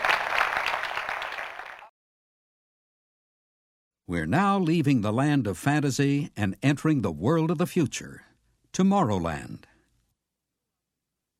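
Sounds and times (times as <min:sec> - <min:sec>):
audience applause: 0:00.0 - 0:01.9
speech: 0:04.1 - 0:09.7.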